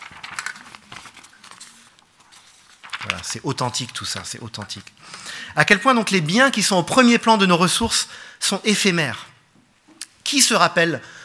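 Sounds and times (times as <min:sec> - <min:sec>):
sheets of paper rustling as someone shuffles through them: 0:00.0 - 0:05.0
speech: 0:03.0 - 0:09.3, 0:10.3 - 0:11.2.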